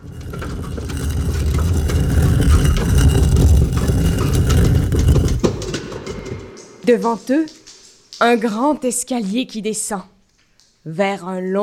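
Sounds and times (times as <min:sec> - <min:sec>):
massive stone monument facade grinding open like a great door: 0:00.0 - 0:07.9
speech: 0:06.9 - 0:07.6, 0:08.2 - 0:10.1, 0:10.8 - 0:11.6.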